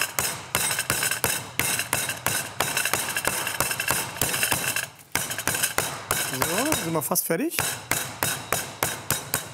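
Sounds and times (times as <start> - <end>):
meat mallet pounding chicken flat: 0.0 - 9.5
speech: 6.9 - 7.9.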